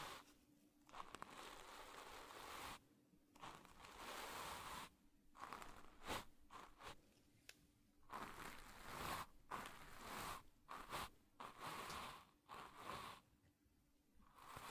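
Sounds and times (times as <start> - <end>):
ear brushing with brushes, foam and burlap: 0.9 - 2.8, 3.4 - 7.0, 8.0 - 13.2, 14.3 - 14.6.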